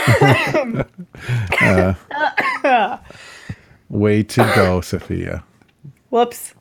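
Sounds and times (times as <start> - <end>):
person coughing after choking on water: 0.0 - 3.0, 4.4 - 4.8
speech: 0.0 - 3.3, 3.9 - 5.5, 6.1 - 6.5.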